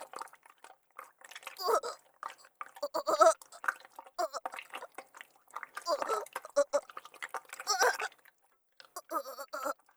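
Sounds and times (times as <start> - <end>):
person grunting: 1.6 - 2.0, 2.8 - 3.4, 4.2 - 4.4, 5.9 - 6.8, 7.7 - 8.1, 9.0 - 9.7.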